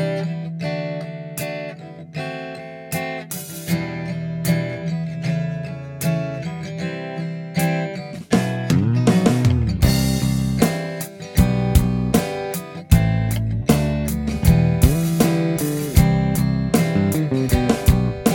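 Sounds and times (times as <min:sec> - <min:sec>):
acoustic guitar: 0:00.0 - 0:18.3
drums: 0:02.9 - 0:04.9, 0:07.6 - 0:18.3
electric bass: 0:08.4 - 0:18.3.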